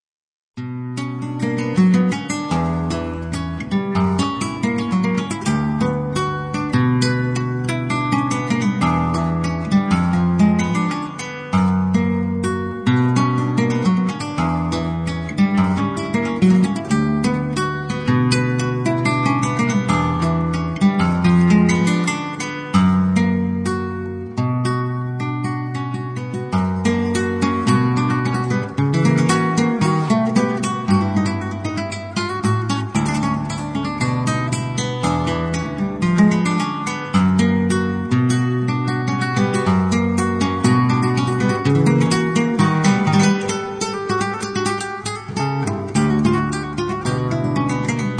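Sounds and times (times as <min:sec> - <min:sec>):
guitar solo: 0:00.6 - 0:48.1.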